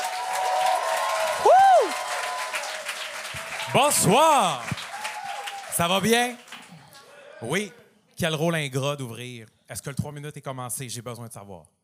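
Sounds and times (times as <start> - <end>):
audience applauding: 0.0 - 7.1
speech: 3.7 - 4.7, 5.8 - 6.4, 7.4 - 11.8.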